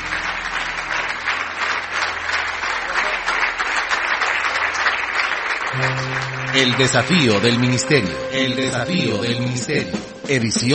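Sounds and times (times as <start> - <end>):
audience applause: 0.0 - 8.3
speech: 5.8 - 10.7.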